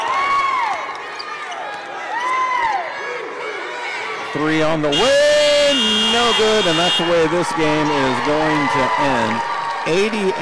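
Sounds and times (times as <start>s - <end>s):
basketball crowd cheering: 0.0s - 10.3s
speech: 4.4s - 10.3s.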